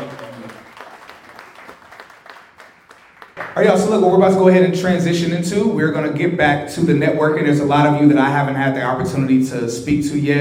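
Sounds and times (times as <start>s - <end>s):
small audience's faint applause at a networking event: 0.0s - 3.8s
speech: 3.6s - 10.3s.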